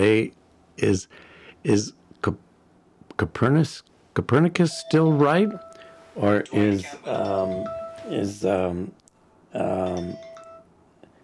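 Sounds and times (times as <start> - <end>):
speech: 0.0 - 2.4, 3.2 - 10.3
phone ringtone during a talk on Copernicus: 4.7 - 6.2, 7.1 - 8.2, 9.8 - 10.7.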